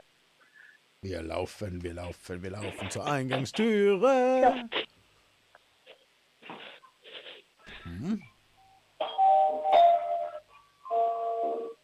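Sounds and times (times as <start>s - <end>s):
speech: 1.0s - 4.9s
doorbell playing a whole melody: 9.0s - 11.8s.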